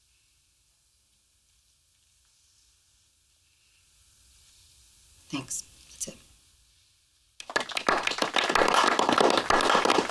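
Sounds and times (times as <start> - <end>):
speech: 5.3 - 6.2
people clapping: 7.4 - 10.0.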